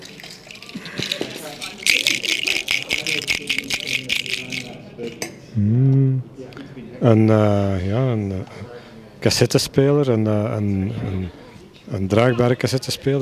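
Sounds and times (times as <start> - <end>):
plastic box of empty soy-sauce fish containers rattling: 0.0 - 4.8
speech: 7.0 - 13.2.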